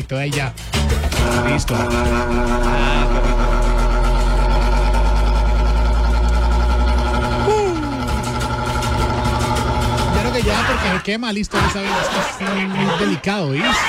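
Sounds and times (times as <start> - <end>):
speech: 0.1 - 3.7, 10.4 - 13.8
electric fan running: 1.1 - 11.0
laughter: 2.7 - 4.6, 10.2 - 13.8.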